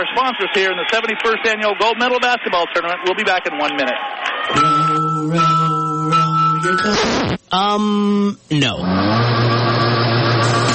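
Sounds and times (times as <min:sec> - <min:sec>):
speech: 0:00.0 - 0:05.8, 0:06.6 - 0:09.4
boat outboard motor throttling up: 0:08.8 - 0:10.7.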